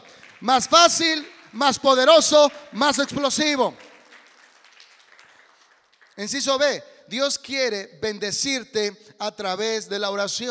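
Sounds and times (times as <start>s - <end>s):
audience applause: 0.0s - 6.2s
speech: 0.4s - 3.8s, 6.2s - 10.4s.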